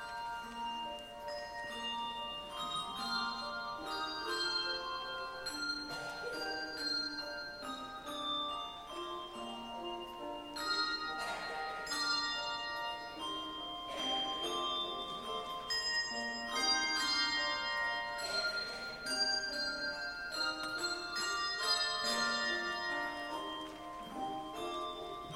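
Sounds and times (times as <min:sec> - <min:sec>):
carillons playing an anthem: 0:00.0 - 0:25.3.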